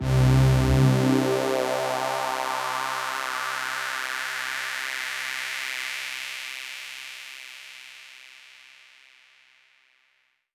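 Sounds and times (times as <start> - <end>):
synth pad in C from a Prophet One: 0.0 - 4.9.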